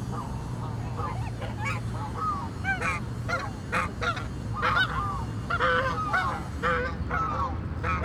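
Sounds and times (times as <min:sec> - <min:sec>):
goose honking in a city setting: 0:00.1 - 0:08.0.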